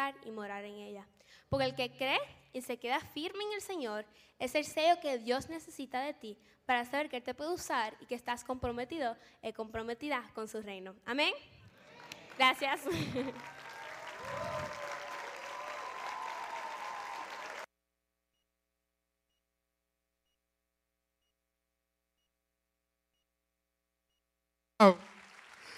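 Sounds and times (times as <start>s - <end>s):
speech: 0.1s - 11.6s, 12.4s - 13.6s, 24.8s - 25.1s
laughter: 11.7s - 15.1s
audience applauding: 11.7s - 17.7s, 24.8s - 25.7s.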